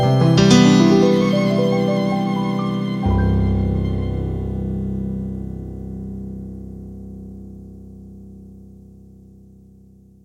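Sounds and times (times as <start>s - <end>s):
violin playing: 0.4s - 5.1s.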